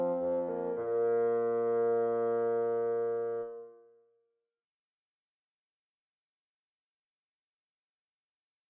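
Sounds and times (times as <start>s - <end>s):
chaconne bassoon duet: 0.0s - 3.8s.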